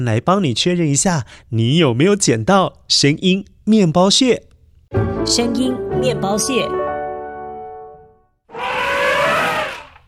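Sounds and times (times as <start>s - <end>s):
speech: 0.0s - 6.8s
elephant call: 8.5s - 10.0s.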